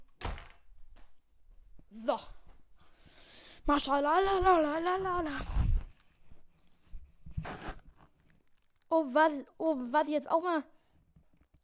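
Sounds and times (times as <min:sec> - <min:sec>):
room door closing: 0:00.1 - 0:00.6
speech: 0:01.9 - 0:02.4, 0:03.7 - 0:05.6, 0:08.9 - 0:10.7.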